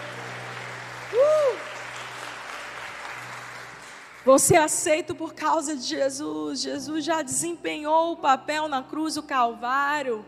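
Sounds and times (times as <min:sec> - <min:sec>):
audience applause: 0:00.0 - 0:04.3
speech: 0:04.2 - 0:10.2.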